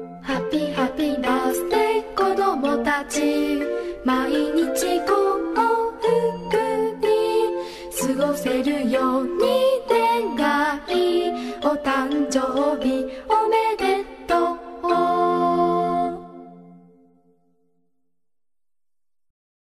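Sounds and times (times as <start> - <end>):
Japanese song with lyrics: 0.2 - 16.6.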